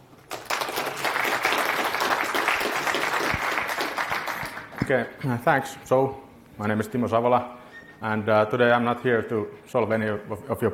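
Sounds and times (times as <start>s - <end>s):
conference audience applause welcoming a speaker: 0.2s - 5.0s
speech: 4.9s - 10.7s.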